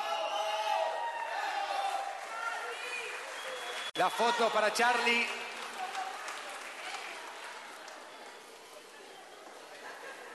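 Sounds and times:
audience applause: 1.0s - 8.8s
speech: 4.0s - 5.4s
laughter: 9.6s - 10.3s.

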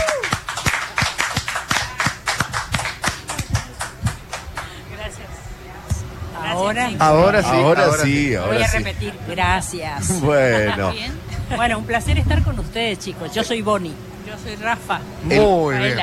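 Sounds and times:
person whooping: 0.0s - 0.4s
audience applause: 0.0s - 4.8s
laughter: 0.9s - 5.1s, 7.1s - 11.9s
speech: 6.7s - 16.0s.

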